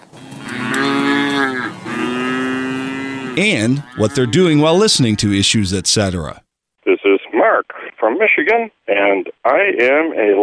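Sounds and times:
dairy cow mooing: 0.2 - 5.6
speech: 3.4 - 6.4, 7.5 - 10.4.

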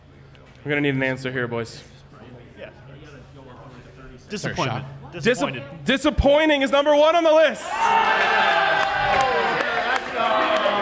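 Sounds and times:
speech: 0.6 - 2.0, 4.3 - 9.3
group cheering: 7.5 - 10.8.

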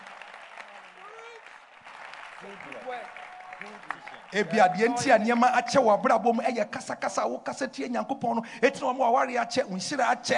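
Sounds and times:
crowd clapping: 0.0 - 5.8
speech: 2.4 - 10.3.

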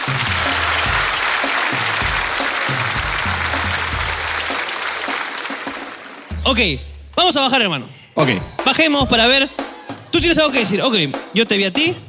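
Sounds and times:
crowd clapping: 0.0 - 6.4
speech: 6.5 - 12.0.

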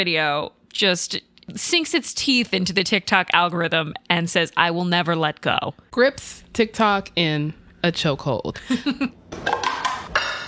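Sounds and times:
speech: 0.0 - 9.6
utensils clinking against a bowl preparing a salmon rice bowl: 9.6 - 10.4.

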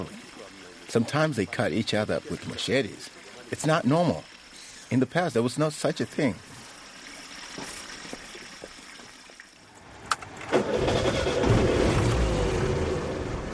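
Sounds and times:
speech: 0.9 - 4.3, 4.9 - 6.5
battered four-wheel-drive vehicle climbing into the forest: 10.3 - 13.5.

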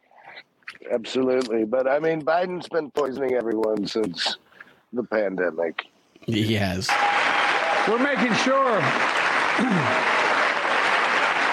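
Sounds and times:
speech: 0.8 - 7.2, 7.9 - 10.2
crowd applauding: 6.9 - 11.5.

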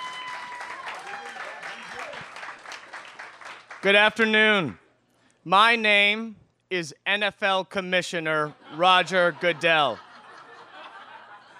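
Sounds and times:
audience clapping to welcome a guest at the Green Mill bar: 0.0 - 4.7
speech: 3.8 - 4.8, 5.4 - 10.0
laughter: 8.4 - 11.5.

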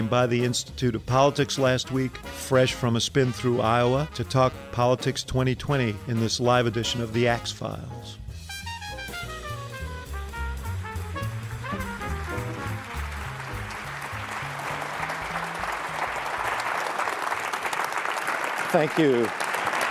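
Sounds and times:
music: 0.0 - 17.7
speech: 0.1 - 8.2, 18.8 - 19.5
live audience applause greeting a political journalist guest at a recorded event: 11.2 - 19.8.

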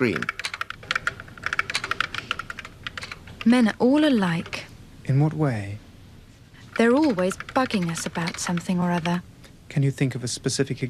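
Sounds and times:
speech: 0.0 - 0.4, 3.4 - 5.8, 6.8 - 10.8
typing on a computer keyboard to converse with a chat program: 0.0 - 4.6, 6.7 - 9.2.

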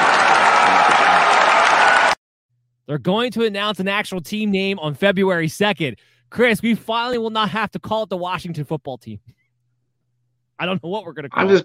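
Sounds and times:
applause: 0.0 - 2.2
speech: 2.9 - 9.4, 10.6 - 11.6.

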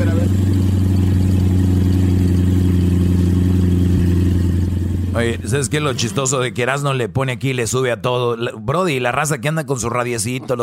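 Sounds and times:
Corvette C8 sports car engine revving: 0.0 - 6.7
speech: 5.2 - 10.6.

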